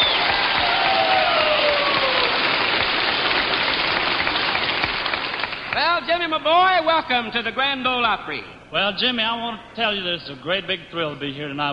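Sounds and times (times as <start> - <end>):
audience applause at the Grand Ole Opry greeting a country singer: 0.0 - 6.0
speech: 6.1 - 11.7.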